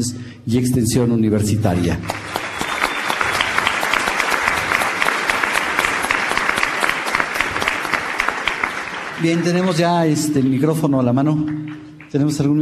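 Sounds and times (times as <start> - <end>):
speech: 0.0 - 2.3, 9.2 - 12.5
audience applause: 2.0 - 10.2.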